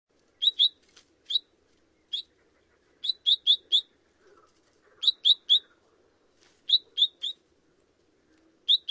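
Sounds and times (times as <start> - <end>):
low background hum: 0.1 - 8.8
long-tailed finch chirping: 0.4 - 3.9, 5.0 - 5.8, 6.6 - 7.4, 8.7 - 8.8.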